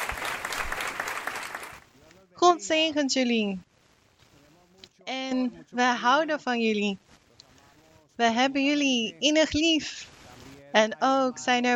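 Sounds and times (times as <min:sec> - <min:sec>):
audience applause: 0:00.0 - 0:01.8
speech: 0:02.6 - 0:03.7, 0:05.1 - 0:07.0, 0:08.2 - 0:10.1, 0:10.7 - 0:11.7.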